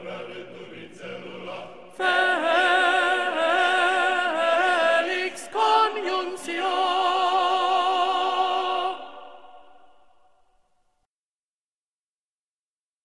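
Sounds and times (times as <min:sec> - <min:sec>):
tenor singing slowly: 0:00.0 - 0:09.9.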